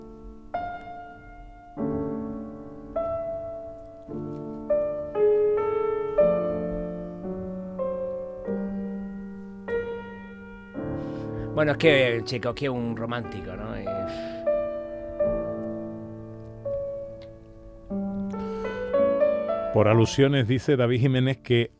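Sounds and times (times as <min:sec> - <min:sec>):
solo piano playing a slow gentle melody over soft chords: 0:00.0 - 0:21.7
speech: 0:11.6 - 0:14.3, 0:19.8 - 0:21.7.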